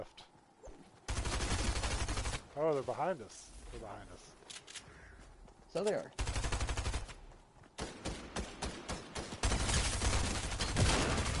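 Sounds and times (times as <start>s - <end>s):
speech: 0.0s - 0.3s, 2.6s - 4.4s, 5.7s - 6.4s
gunfire in a multiplayer shooter video game: 1.1s - 2.5s, 6.2s - 7.2s, 7.8s - 11.3s.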